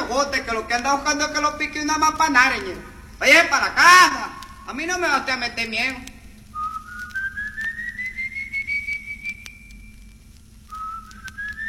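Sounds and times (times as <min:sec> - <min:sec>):
faint low hum: 0:00.0 - 0:11.6
speech: 0:00.1 - 0:06.1
eerie high-pitched whistle: 0:06.6 - 0:10.0.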